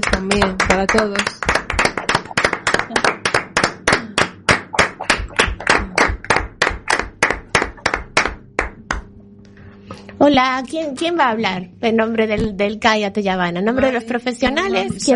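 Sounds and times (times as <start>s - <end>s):
audience applause: 0.0s - 9.0s
speech: 0.2s - 1.4s, 10.2s - 15.1s.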